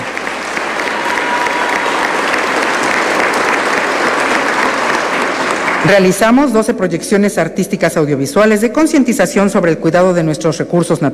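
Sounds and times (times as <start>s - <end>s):
crowd clapping: 0.0s - 6.6s
speech: 5.8s - 11.1s.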